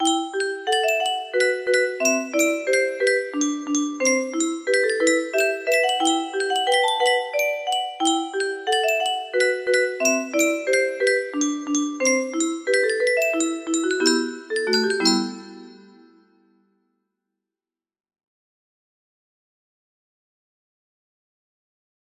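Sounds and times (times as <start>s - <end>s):
music box: 0.0s - 16.3s.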